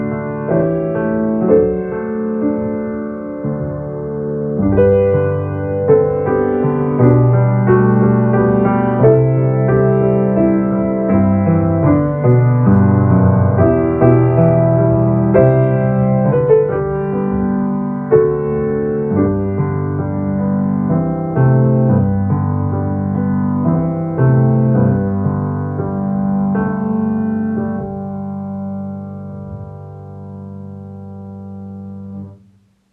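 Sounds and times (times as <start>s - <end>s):
piano playing hard: 0.0s - 32.4s.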